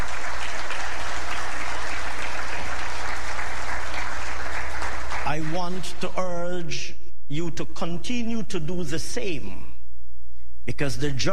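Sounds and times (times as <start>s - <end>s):
audience round of applause: 0.0s - 6.2s
speech: 5.4s - 9.7s, 10.6s - 11.3s.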